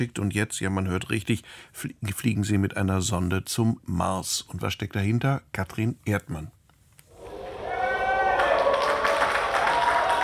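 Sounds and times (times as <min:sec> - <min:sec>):
speech: 0:00.0 - 0:06.6
crowd applause: 0:07.2 - 0:10.2.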